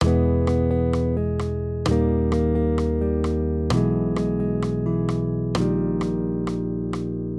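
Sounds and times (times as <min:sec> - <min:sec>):
major triads: 0:00.0 - 0:07.3.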